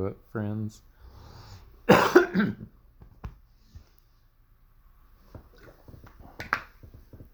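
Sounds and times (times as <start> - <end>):
throat clearing: 1.9 - 2.7.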